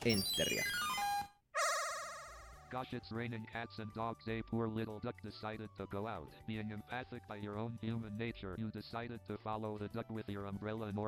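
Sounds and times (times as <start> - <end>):
speech: 0.0 - 0.8, 2.7 - 11.0
high-pitched beep in a video game: 0.0 - 2.6.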